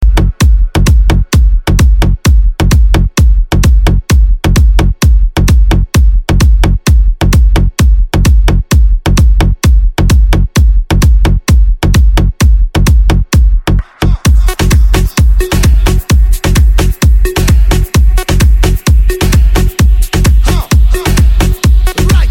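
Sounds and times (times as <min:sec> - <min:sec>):
beat mix: 0:00.0 - 0:22.3.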